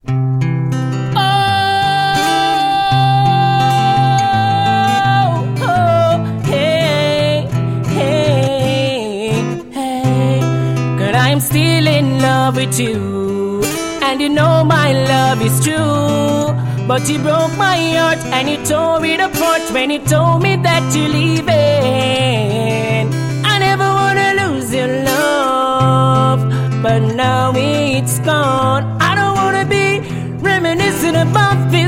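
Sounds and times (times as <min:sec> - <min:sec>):
acoustic music: 0:00.0 - 0:31.8.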